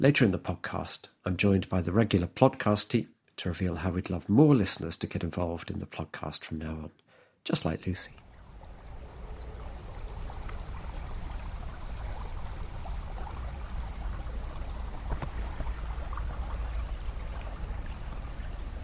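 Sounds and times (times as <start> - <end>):
speech: 0.0 - 8.2
river flowing: 8.2 - 18.8.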